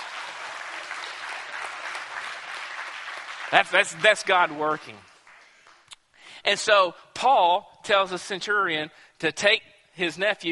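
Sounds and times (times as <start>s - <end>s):
audience clapping: 0.0s - 6.0s
speech: 3.5s - 5.1s, 6.4s - 10.4s.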